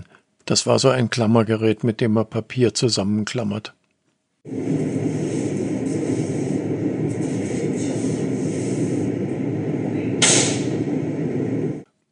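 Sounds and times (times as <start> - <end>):
speech: 0.5 - 3.8
lithium-ion cell safety valve bursting with venting gas roar: 4.4 - 11.9
sharp gunshot-like crack from bursting lithium-ion cell: 10.2 - 10.9.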